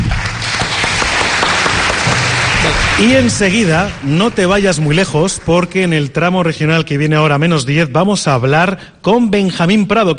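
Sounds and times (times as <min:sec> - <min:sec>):
audience applause for two guests: 0:00.0 - 0:06.0
speech: 0:03.0 - 0:10.1.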